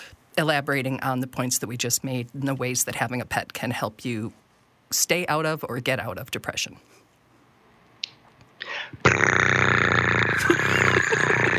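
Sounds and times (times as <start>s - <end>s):
speech: 0.4s - 7.0s
person imitating a cat: 9.0s - 11.5s.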